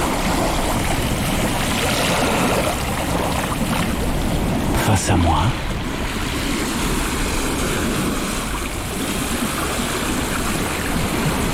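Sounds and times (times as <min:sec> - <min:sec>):
sea waves crashing against cliffs: 0:00.0 - 0:11.5
speech: 0:05.1 - 0:05.7.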